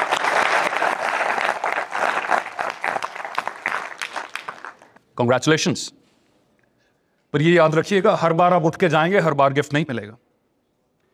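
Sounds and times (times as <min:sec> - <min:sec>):
audience applause at an event: 0:00.0 - 0:05.0
speech: 0:05.2 - 0:06.0, 0:07.3 - 0:10.2.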